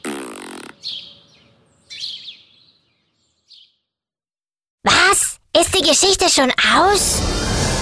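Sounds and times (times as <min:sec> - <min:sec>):
fart: 0:00.0 - 0:00.9
speech: 0:05.6 - 0:07.7.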